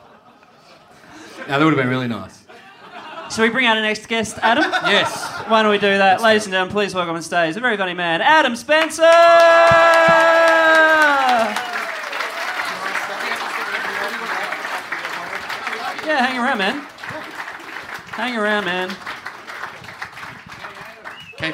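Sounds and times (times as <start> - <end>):
laughter: 0.0 - 6.5, 9.5 - 19.0
speech: 1.5 - 2.4, 3.4 - 11.6, 16.1 - 16.9, 18.2 - 19.1
scattered cheers: 9.0 - 18.2
live audience applause and clapping: 9.1 - 21.5.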